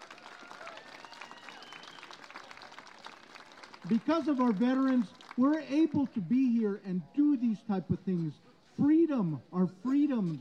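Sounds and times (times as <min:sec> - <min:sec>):
audience applause for veterans: 0:00.0 - 0:05.4
speech: 0:03.8 - 0:10.3.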